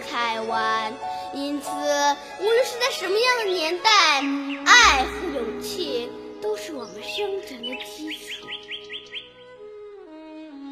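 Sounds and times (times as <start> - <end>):
speech: 0.2 - 8.6
birds singing: 2.9 - 9.9.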